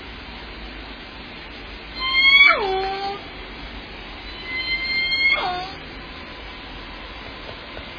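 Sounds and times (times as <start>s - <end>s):
orca calling: 2.0s - 3.2s, 4.3s - 5.8s.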